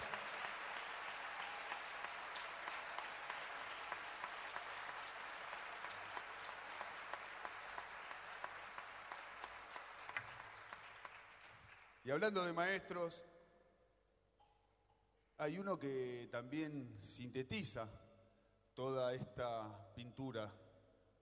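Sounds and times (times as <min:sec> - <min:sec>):
audience applause: 0:00.0 - 0:12.0
speech: 0:12.0 - 0:13.3, 0:15.4 - 0:18.0, 0:18.8 - 0:20.6.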